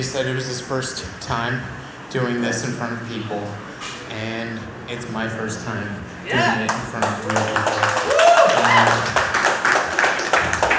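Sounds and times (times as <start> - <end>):
speech: 0.0 - 9.3
audience clapping: 6.7 - 10.7
high whoop: 7.9 - 9.2.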